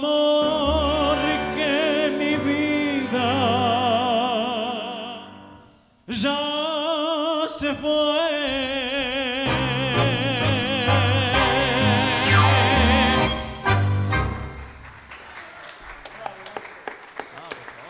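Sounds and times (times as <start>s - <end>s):
orchestral passage with warbling vocal line: 0.0s - 14.3s
audience applause for orchestra: 14.0s - 17.8s.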